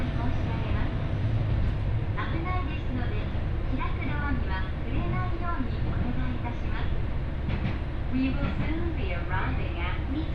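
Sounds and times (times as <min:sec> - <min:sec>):
people talking aboard an Ibara Railway train: 0:00.0 - 0:01.1, 0:02.2 - 0:07.0, 0:08.1 - 0:10.3
Ibara Railway train running between Soun-no-Sato-Ebara and Soja: 0:00.0 - 0:10.3.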